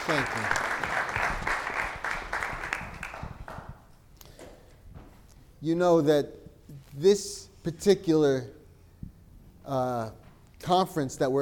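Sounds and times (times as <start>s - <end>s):
audience applause: 0.0s - 3.6s
speech: 0.1s - 1.0s, 5.6s - 6.4s, 7.0s - 8.6s, 9.7s - 11.3s.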